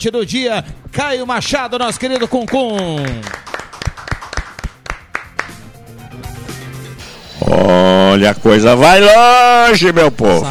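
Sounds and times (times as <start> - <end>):
speech: 0.0 - 3.4, 7.7 - 10.4
applause for a birthday: 1.7 - 5.7.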